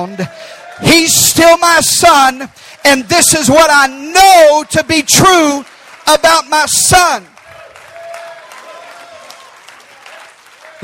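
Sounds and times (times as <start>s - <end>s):
faint cheering or voices: 0.0s - 1.2s, 7.4s - 10.8s
speech: 0.0s - 7.3s
audience clapping: 0.0s - 10.8s.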